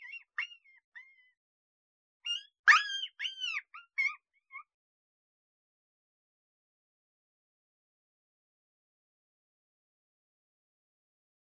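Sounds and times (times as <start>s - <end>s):
coyote pups whining and yipping: 0.0s - 1.2s, 2.3s - 4.6s.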